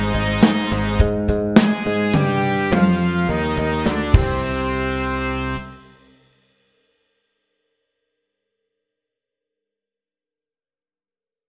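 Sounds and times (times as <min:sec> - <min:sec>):
electric rock music: 0:00.0 - 0:06.1.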